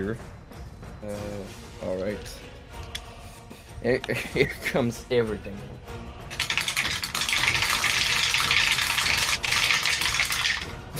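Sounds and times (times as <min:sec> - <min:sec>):
speech: 0:00.0 - 0:00.4, 0:01.0 - 0:02.5, 0:03.8 - 0:06.2
laughter: 0:04.1 - 0:04.9
rain stick: 0:06.3 - 0:10.7.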